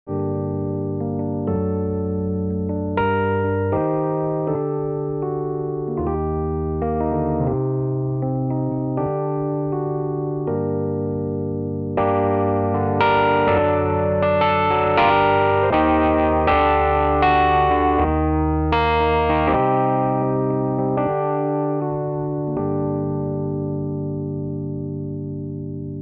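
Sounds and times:
Rhodes V8 electric piano: 0.0 - 25.9.

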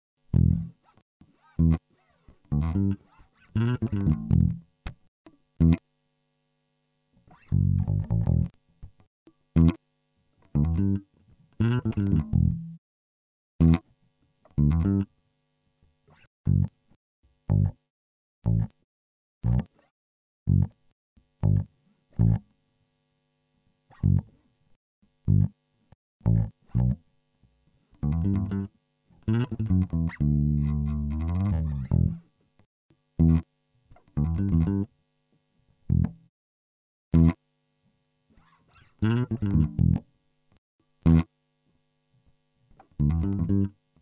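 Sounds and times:
funky bass: 0.3 - 0.8, 1.6 - 1.8, 2.5 - 4.7, 5.6 - 5.8, 7.4 - 8.6, 9.6 - 9.8, 10.6 - 12.8, 13.6 - 13.8, 14.6 - 15.1, 16.5 - 16.8, 17.5 - 17.8, 18.4 - 18.8, 19.4 - 19.7, 20.5 - 20.8, 21.4 - 22.4, 24.0 - 24.4, 25.3 - 25.6, 26.2 - 27.0, 28.0 - 28.7, 29.3 - 32.2, 33.2 - 33.4, 34.2 - 34.9, 35.9 - 36.3, 37.2 - 37.4, 39.0 - 40.0, 41.0 - 41.3, 42.9 - 43.8.

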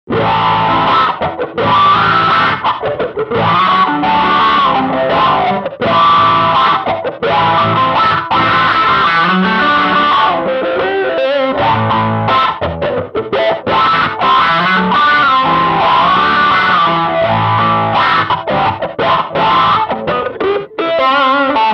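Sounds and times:
dirty blues with auto wah: 0.1 - 21.7.

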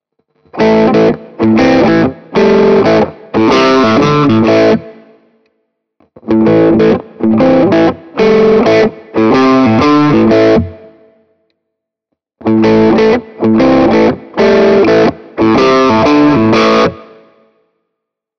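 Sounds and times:
Ibanez AR520HFM LBB mid-gain riff in all positions: 0.4 - 5.0, 6.2 - 11.1, 12.4 - 17.4.

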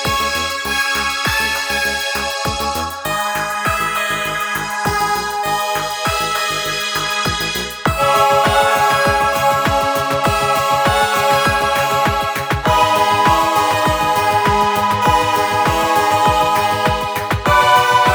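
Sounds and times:
Behringer Solina VC 340 string synthesizer: 0.0 - 18.1.

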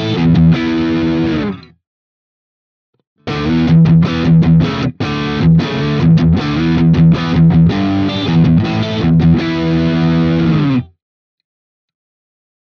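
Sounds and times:
Ibanez AR520HFM guitar rhythm riff in all pickup positions: 0.0 - 1.8, 3.2 - 11.0.

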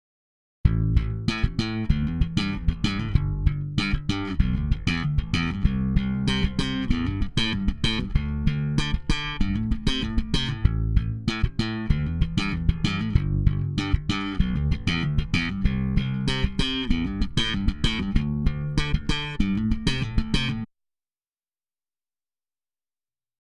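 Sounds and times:
bass: 0.6 - 20.7.

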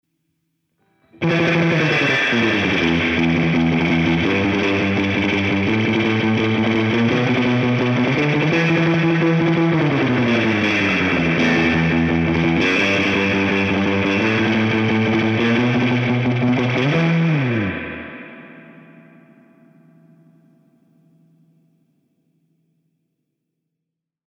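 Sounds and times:
clean surf guitar: 0.8 - 21.7.

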